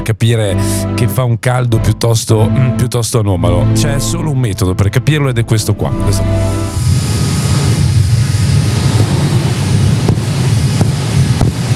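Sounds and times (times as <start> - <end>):
speech: 0.0 - 6.8
small portable electric fan running: 6.7 - 11.7.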